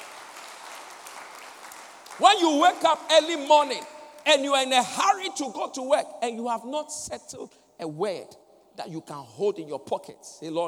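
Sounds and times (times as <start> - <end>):
audience clapping hands: 0.0 - 4.3
speech: 2.2 - 10.6.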